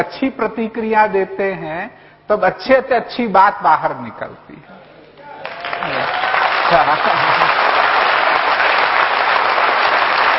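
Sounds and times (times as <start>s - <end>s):
speech: 0.0s - 4.9s, 6.7s - 7.5s
audience clapping: 5.2s - 10.3s.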